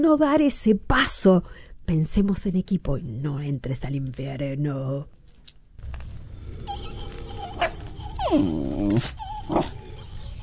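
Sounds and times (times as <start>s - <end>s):
speech: 0.0s - 5.2s, 8.3s - 9.8s
dog growling: 5.9s - 10.4s.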